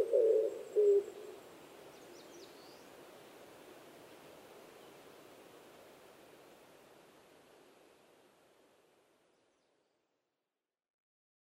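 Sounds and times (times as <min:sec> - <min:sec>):
Oriental turtle dove cooing: 0:00.0 - 0:01.4.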